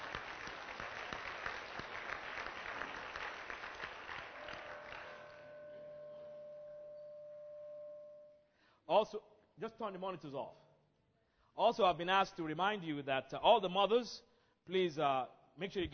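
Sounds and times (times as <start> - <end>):
audience applause: 0.0 - 5.6
speech: 8.9 - 10.6, 11.6 - 15.9.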